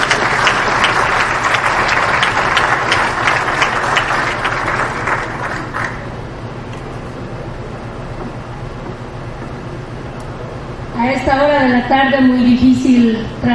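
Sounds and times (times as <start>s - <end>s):
audience applause: 0.0s - 6.2s
speech: 11.8s - 13.5s.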